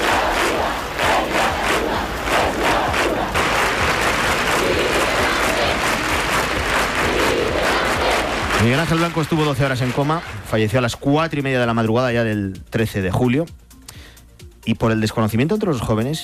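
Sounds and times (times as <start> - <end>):
desperate shouting at candlelight vigils: 0.0 - 10.5
speech: 8.6 - 13.6, 14.6 - 16.2.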